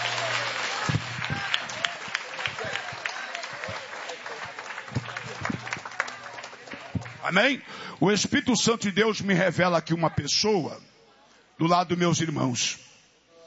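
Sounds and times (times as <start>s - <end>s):
audience clapping hands: 0.0s - 7.8s
speech: 7.3s - 10.9s, 11.6s - 12.8s.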